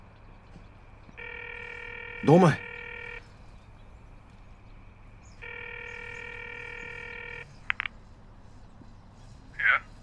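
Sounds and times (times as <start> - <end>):
low hum: 0.0 - 10.0
telephone ringing: 1.2 - 3.4, 5.4 - 7.9
speech: 2.2 - 2.7.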